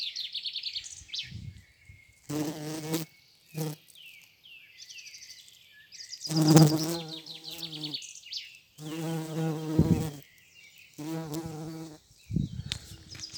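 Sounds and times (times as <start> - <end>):
yellow-headed bumblebee buzzing: 2.3 - 3.8, 6.3 - 8.0, 8.8 - 10.2, 11.0 - 13.3.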